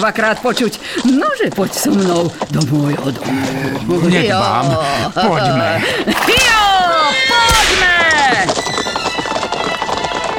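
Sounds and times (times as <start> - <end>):
speech: 0.0 - 9.0
horses galloping: 0.0 - 10.3
laughter: 3.9 - 7.5.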